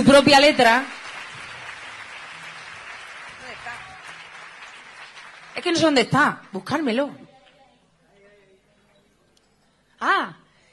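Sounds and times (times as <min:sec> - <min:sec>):
speech: 0:00.0 - 0:01.0, 0:05.6 - 0:07.2, 0:10.0 - 0:10.4
audience applause: 0:00.0 - 0:05.9.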